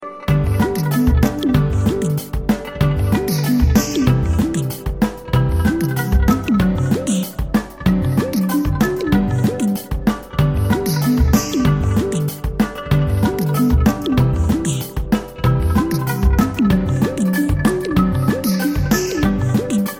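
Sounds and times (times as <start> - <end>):
christmas song remix: 0.0 - 19.9.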